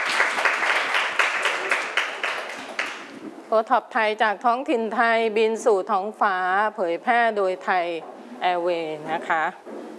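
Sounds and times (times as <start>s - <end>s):
children clapping hands: 0.0s - 3.1s
speech: 3.5s - 9.6s.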